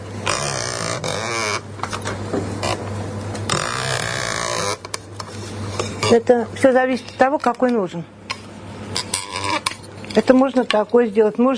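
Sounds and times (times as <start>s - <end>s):
creaking sound made by an object: 0.2s - 2.9s, 3.5s - 5.0s, 8.9s - 9.9s
speech: 6.1s - 8.2s, 10.2s - 11.5s.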